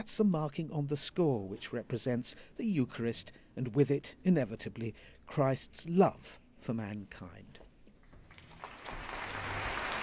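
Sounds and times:
speech: 0.0 - 7.6
concert audience applauding the conductor after an orchestral performance: 8.4 - 10.0.

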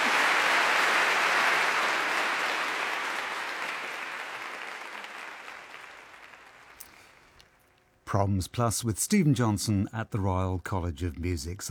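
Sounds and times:
audience applause: 0.0 - 6.8
speech: 8.1 - 11.7.

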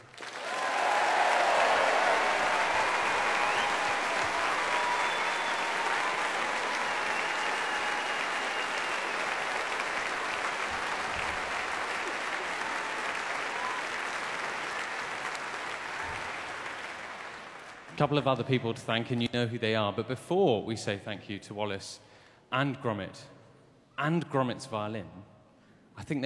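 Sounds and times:
audience applause for orchestra: 0.0 - 18.0
speech: 18.0 - 23.4, 24.0 - 25.2, 26.0 - 26.2.

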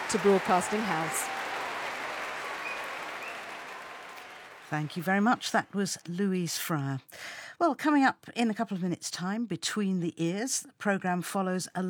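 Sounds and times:
concert audience cheering and applauding at the Royal Albert Hall after an orchestra performance: 0.0 - 5.3
speech: 0.1 - 1.3, 4.7 - 11.8.

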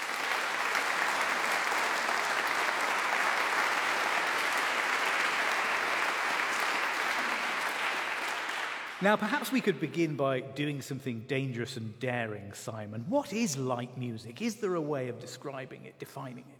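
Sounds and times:
audience applause: 0.0 - 9.6
speech: 9.0 - 16.5.

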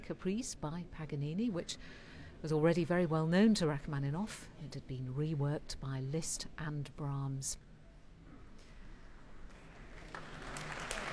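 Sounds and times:
speech: 0.1 - 7.7
concert audience applause: 9.7 - 11.1.

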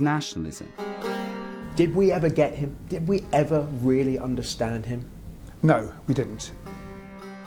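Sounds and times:
speech: 0.0 - 1.1, 1.8 - 6.8
crowd chattering: 1.6 - 7.1.

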